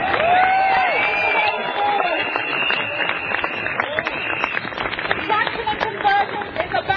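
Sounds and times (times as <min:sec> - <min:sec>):
cheering: 0:00.0 - 0:05.5
crowd applauding: 0:00.0 - 0:06.8
high whistles: 0:01.0 - 0:04.8.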